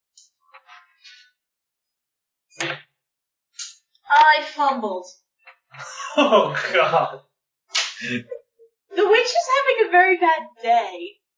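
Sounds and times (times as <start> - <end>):
speech: 4.4 - 5.2, 5.8 - 7.3, 8.0 - 8.4, 9.0 - 11.2
laughter: 5.8 - 7.2, 7.9 - 8.3
arrow being shot sound effect: 7.8 - 8.2.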